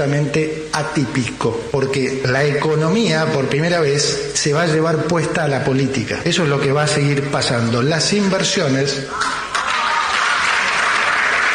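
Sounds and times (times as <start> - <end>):
speech: 0.0 - 9.5
audience clapping: 9.1 - 11.5.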